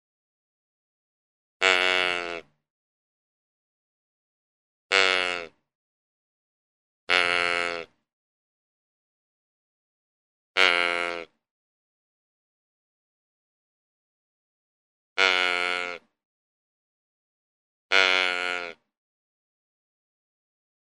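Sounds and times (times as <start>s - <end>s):
deer giving nasal bleats: 1.6s - 2.5s, 4.9s - 5.6s, 7.1s - 8.0s, 10.6s - 11.3s, 15.2s - 16.1s, 17.9s - 18.8s.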